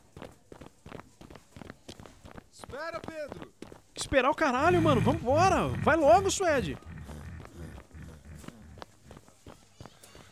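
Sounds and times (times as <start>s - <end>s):
running footsteps: 0.0s - 10.3s
speech: 2.7s - 6.9s.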